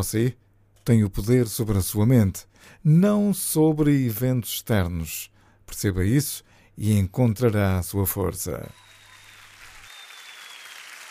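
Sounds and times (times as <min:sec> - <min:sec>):
speech: 0:00.0 - 0:08.8
audience applause: 0:08.7 - 0:11.0.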